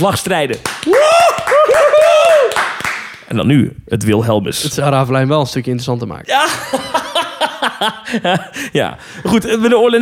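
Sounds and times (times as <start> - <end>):
speech: 0.0 - 2.1, 3.3 - 7.0, 7.6 - 10.0
applause: 0.6 - 3.2
laughter: 6.3 - 9.5.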